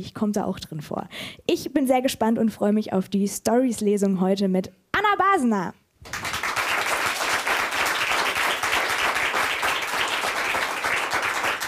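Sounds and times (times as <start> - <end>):
speech: 0.0 - 6.3
audience applause: 6.1 - 11.6.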